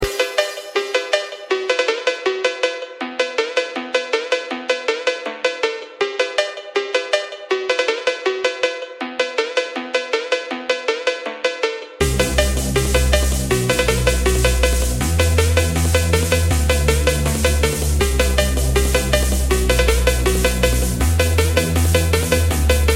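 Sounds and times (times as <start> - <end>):
phonk music: 0.0 - 22.9.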